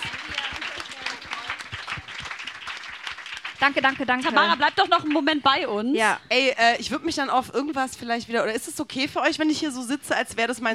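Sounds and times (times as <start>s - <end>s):
applause: 0.0s - 5.7s
speech: 3.6s - 10.7s.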